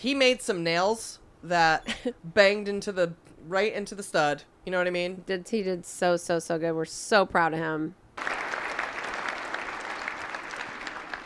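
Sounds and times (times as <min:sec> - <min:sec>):
speech: 0:00.0 - 0:08.3
audience applause: 0:08.2 - 0:11.2.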